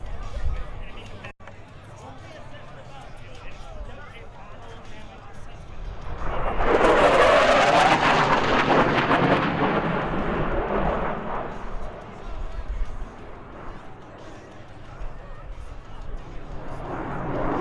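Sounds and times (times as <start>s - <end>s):
F-18 jet aircraft runs: 5.3s - 17.5s.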